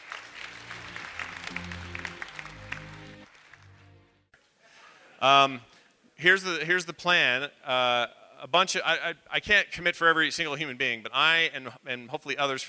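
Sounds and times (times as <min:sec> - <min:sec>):
audience applause: 0:00.0 - 0:04.2
speech: 0:05.2 - 0:12.6.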